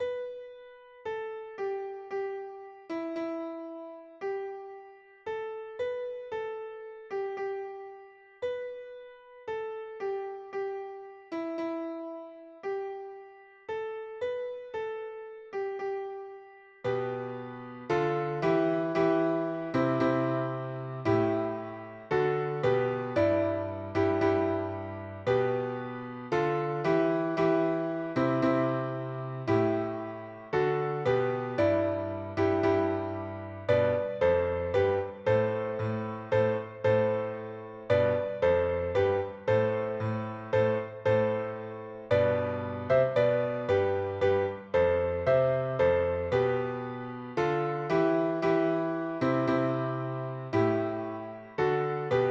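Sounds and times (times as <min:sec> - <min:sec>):
piano composition: 0:00.0 - 0:52.2.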